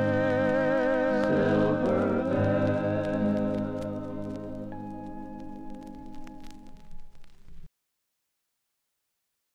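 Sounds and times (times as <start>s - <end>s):
male and female country duet: 0.0s - 4.4s.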